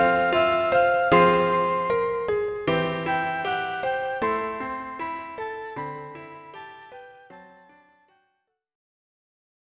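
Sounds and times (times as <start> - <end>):
flute game music: 0.0 - 4.3.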